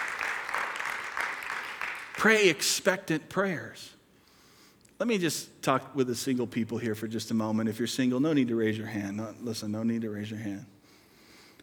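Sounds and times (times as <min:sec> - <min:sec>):
crowd clapping: 0:00.0 - 0:02.6
speech: 0:02.2 - 0:04.0, 0:05.0 - 0:10.8.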